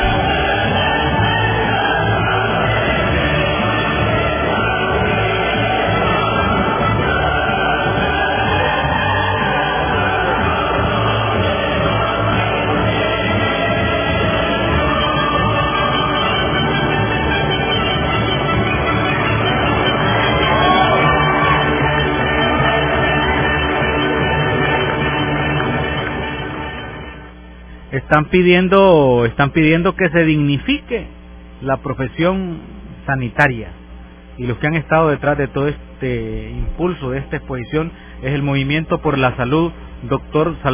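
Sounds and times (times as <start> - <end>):
classical choral music: 0.0 - 27.4
audience applause: 6.9 - 17.4, 18.2 - 27.2
speech: 28.1 - 33.8, 34.4 - 40.7.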